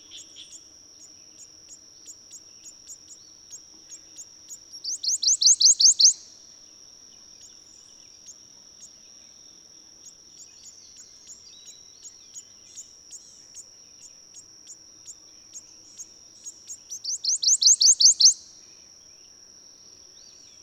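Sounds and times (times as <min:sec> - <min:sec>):
bird singing bright rising upslurred notes: 0:00.1 - 0:06.3, 0:10.0 - 0:18.4.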